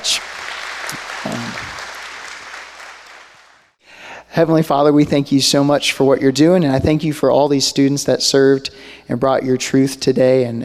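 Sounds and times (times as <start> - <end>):
audience round of applause: 0.0 - 3.8
speech: 4.4 - 10.6.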